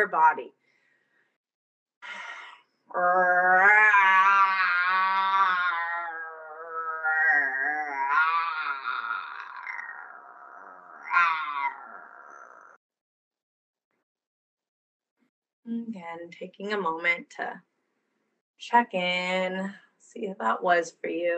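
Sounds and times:
speech: 0:00.0 - 0:00.6, 0:02.9 - 0:03.8, 0:15.7 - 0:17.7, 0:18.6 - 0:21.3
person roaring in anger exercise: 0:02.9 - 0:12.8.

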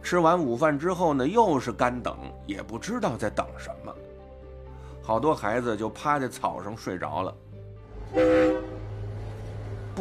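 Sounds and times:
speech: 0:00.1 - 0:04.1, 0:05.0 - 0:07.4, 0:08.1 - 0:08.7
train engine rumble: 0:07.8 - 0:09.9
train horn blast: 0:08.0 - 0:09.1.

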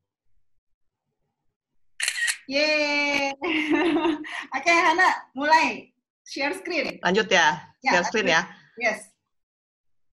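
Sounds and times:
screenshot camera shutter sound effect: 0:02.0 - 0:02.4
speech: 0:02.5 - 0:09.1
laughter: 0:03.4 - 0:04.5.

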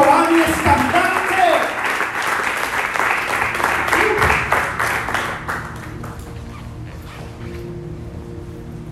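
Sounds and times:
audience applause: 0:00.0 - 0:06.3.

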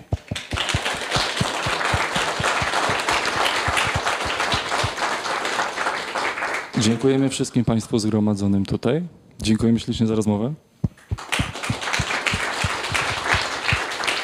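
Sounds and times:
audience applause: 0:00.0 - 0:07.2, 0:11.1 - 0:14.2
speech: 0:06.8 - 0:10.7.

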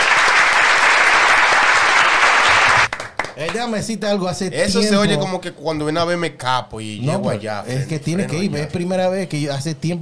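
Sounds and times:
audience applause: 0:00.0 - 0:03.6
speech: 0:03.4 - 0:10.0.

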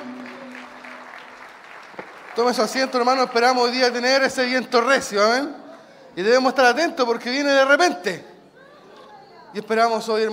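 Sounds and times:
audience applause of praise: 0:00.0 - 0:04.0
speech: 0:02.4 - 0:05.6, 0:06.2 - 0:08.3, 0:09.5 - 0:10.3.

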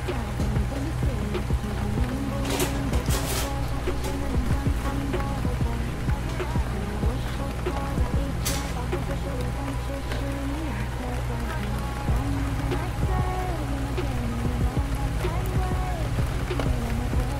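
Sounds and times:
gentle rain pattering against tall windows: 0:00.0 - 0:17.3
low rumbling: 0:00.0 - 0:17.3.

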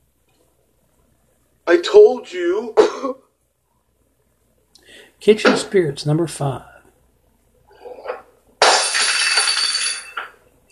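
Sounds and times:
speech: 0:01.8 - 0:03.2, 0:05.2 - 0:06.7
dishes crashing and breaking: 0:08.1 - 0:10.7.

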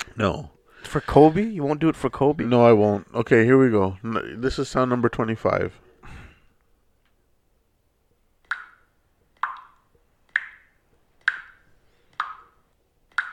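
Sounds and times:
speech: 0:00.2 - 0:05.8
leaking faucet dripping: 0:08.4 - 0:13.3.

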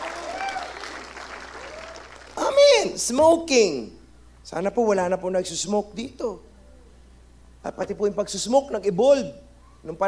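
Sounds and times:
audience clapping: 0:00.0 - 0:02.6
speech: 0:02.8 - 0:06.5, 0:07.6 - 0:10.0.

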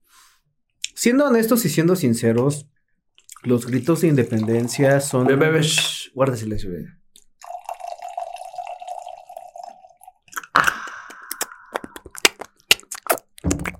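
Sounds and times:
speech: 0:01.0 - 0:02.8, 0:03.4 - 0:07.0
tequila being poured into a glass: 0:03.2 - 0:06.0, 0:07.4 - 0:11.8.

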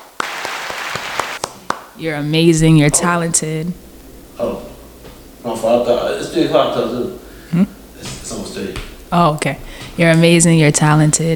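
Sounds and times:
round of applause: 0:00.0 - 0:01.9
speech: 0:02.0 - 0:04.7, 0:05.4 - 0:07.7, 0:08.6 - 0:11.3.

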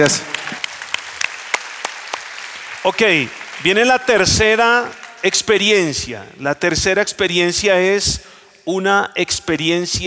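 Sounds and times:
speech: 0:00.0 - 0:00.4, 0:02.8 - 0:10.0
small group clapping: 0:00.0 - 0:06.1.

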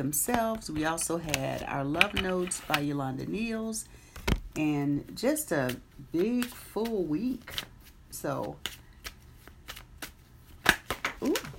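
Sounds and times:
speech: 0:00.0 - 0:08.8
deck of affirmation cards being shuffled: 0:00.3 - 0:03.0, 0:05.6 - 0:11.5.

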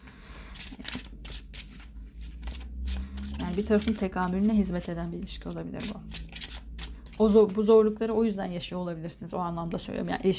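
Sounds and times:
tarot cards being shuffled and picked: 0:00.5 - 0:07.7
speech: 0:03.6 - 0:06.2, 0:07.2 - 0:10.3.

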